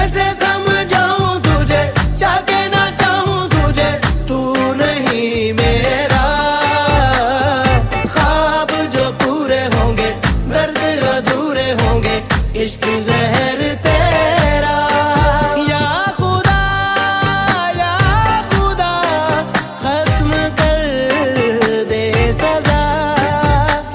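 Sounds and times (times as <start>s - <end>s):
Pakistani drama ringtone music: 0.0s - 23.9s.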